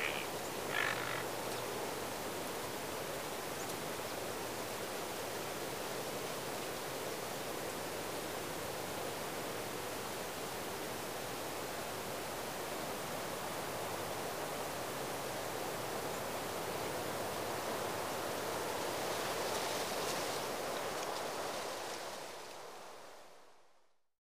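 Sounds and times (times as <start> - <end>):
birds: 0.0 - 1.7
autumn wind: 0.0 - 24.1.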